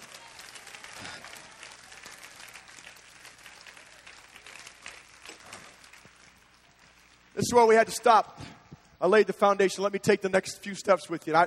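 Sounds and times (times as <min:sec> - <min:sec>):
crowd clapping: 0:00.0 - 0:08.1
speech: 0:07.4 - 0:11.4.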